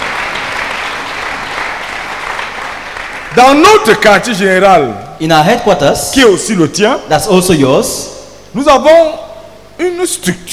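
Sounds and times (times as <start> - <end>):
audience clapping for themselves: 0.0 - 4.1
speech: 3.4 - 9.2, 9.8 - 10.5.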